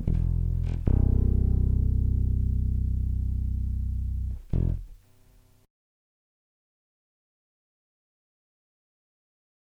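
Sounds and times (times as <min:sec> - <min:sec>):
bass through piezo pickup: 0:00.0 - 0:05.2.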